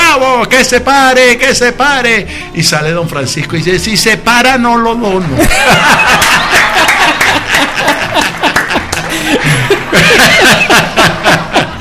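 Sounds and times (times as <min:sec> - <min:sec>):
speech: 0:00.2 - 0:06.6
applause: 0:05.2 - 0:10.2
laughter: 0:05.4 - 0:11.8.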